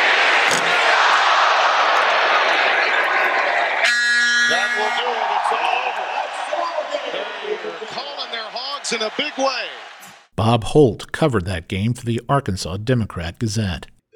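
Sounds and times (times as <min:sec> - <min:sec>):
packed basketball arena crowd screaming and roaring: 0:00.0 - 0:10.3
harsh arena buzzer: 0:03.8 - 0:05.2
speech: 0:08.9 - 0:13.9.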